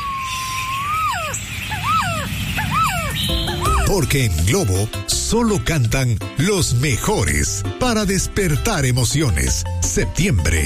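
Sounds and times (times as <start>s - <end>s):
quetzal singing: 0.0s - 3.9s
speech: 4.0s - 10.6s.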